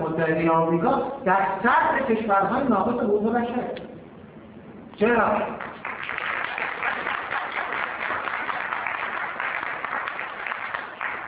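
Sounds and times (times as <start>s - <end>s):
speech: 0.2s - 3.9s, 5.0s - 5.7s
audience applause during a speech: 5.6s - 11.2s.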